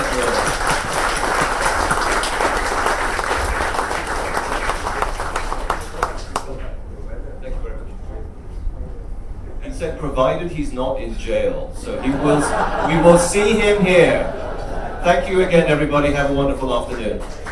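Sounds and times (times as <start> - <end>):
laughter: 0.0 - 2.6, 11.9 - 15.9
large audience applause: 0.0 - 6.5, 17.2 - 17.4
speech: 10.1 - 14.4, 15.0 - 17.4.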